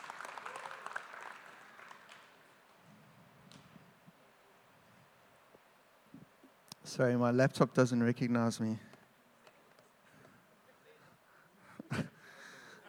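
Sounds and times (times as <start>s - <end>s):
audience clapping: 0.0s - 2.8s
speech: 6.9s - 8.9s.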